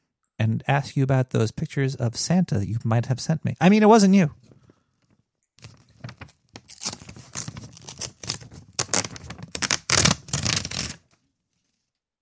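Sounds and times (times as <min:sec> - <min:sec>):
speech: 0:00.4 - 0:04.6
paper check being torn: 0:05.6 - 0:11.1.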